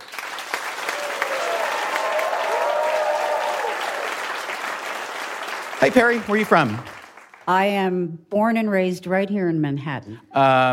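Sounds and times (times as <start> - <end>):
audience applause welcoming a contestant at a live panel show: 0.0 - 7.5
speech: 5.8 - 6.9, 7.5 - 10.7.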